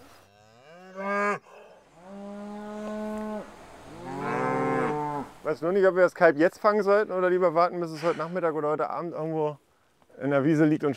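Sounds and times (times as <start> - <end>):
cow mooing beside her calf: 0.3 - 5.4
speech: 5.5 - 9.6, 10.2 - 10.9.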